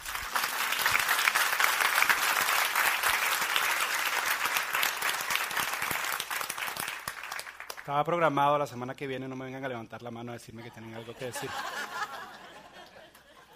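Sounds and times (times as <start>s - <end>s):
audience applause: 0.0s - 7.9s
speech: 7.9s - 11.8s
laughter: 10.6s - 13.5s.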